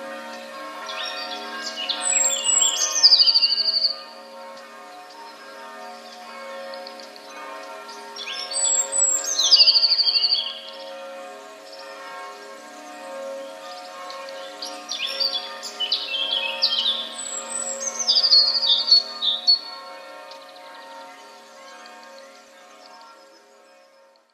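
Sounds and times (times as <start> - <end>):
other birds chirping: 0.2 - 4.0, 6.1 - 19.7
Eurasian blue tit singing: 0.9 - 3.9, 8.2 - 10.7, 14.3 - 19.6
speech: 3.1 - 4.0.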